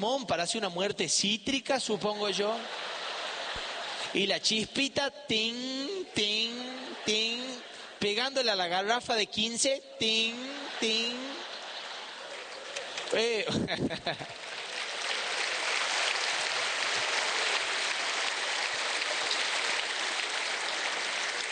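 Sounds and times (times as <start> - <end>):
speech: 0.0 - 3.0, 4.1 - 11.3, 13.1 - 14.4
laughter: 1.8 - 4.6, 5.8 - 8.4, 10.0 - 14.4
audience applause: 2.5 - 4.2, 10.3 - 21.5.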